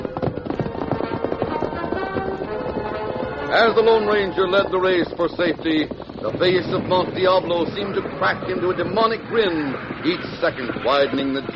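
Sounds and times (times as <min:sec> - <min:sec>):
horse galloping: 0:00.0 - 0:11.5
speech: 0:03.5 - 0:11.5.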